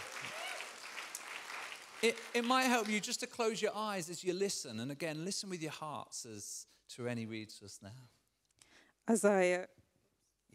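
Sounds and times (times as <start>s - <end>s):
audience applause: 0.0s - 3.6s
speech: 2.0s - 8.2s, 9.0s - 9.8s.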